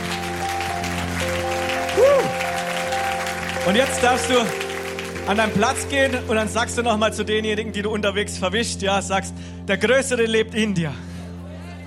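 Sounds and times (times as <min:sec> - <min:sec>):
church congregation clapping after a sermon: 0:00.0 - 0:06.5
sustained organ-like tones: 0:00.0 - 0:08.9
speech: 0:03.6 - 0:04.6, 0:05.3 - 0:11.1.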